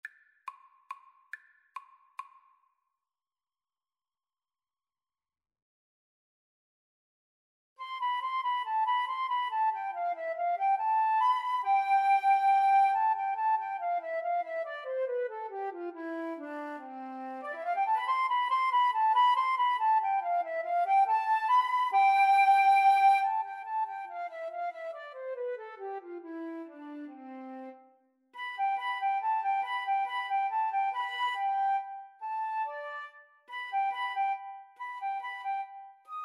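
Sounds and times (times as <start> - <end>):
flute duet: 7.8 - 36.2.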